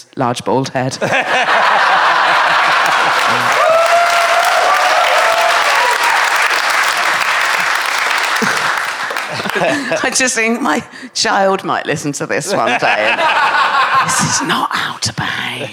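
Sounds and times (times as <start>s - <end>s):
speech: 0.0s - 1.8s, 9.4s - 15.7s
laughter: 1.0s - 10.2s, 12.5s - 14.4s
crowd applause: 1.8s - 10.0s
whoops: 2.9s - 9.4s.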